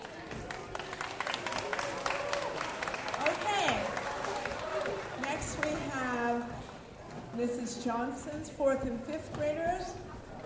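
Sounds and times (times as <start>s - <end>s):
audience applause: 0.0s - 5.8s
speech: 7.8s - 10.0s.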